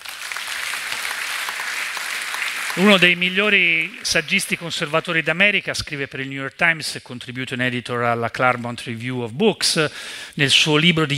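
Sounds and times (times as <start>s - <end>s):
audience applause welcoming a guest at a discussion event: 0.0s - 5.4s
speech: 2.8s - 11.1s.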